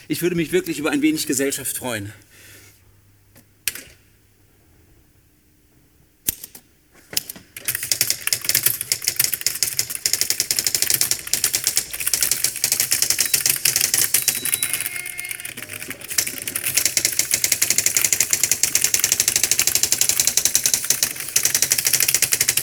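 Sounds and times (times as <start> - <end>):
speech: 0.1 - 2.5
fast hard typing on letter keys: 7.6 - 22.6.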